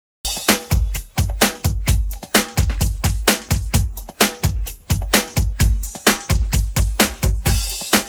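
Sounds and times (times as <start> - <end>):
drum pattern: 0.2 - 8.0.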